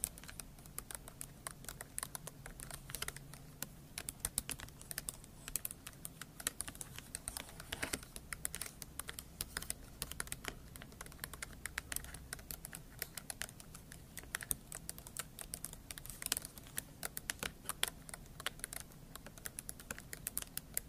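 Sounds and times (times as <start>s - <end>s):
scratching and tapping rapid clicks: 0.0s - 20.8s.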